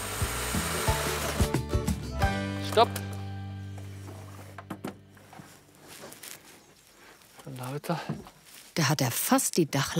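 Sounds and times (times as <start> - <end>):
power saw cutting a door hole through a wooden facade: 0.0 - 1.6
speech: 2.8 - 3.0, 7.8 - 9.9.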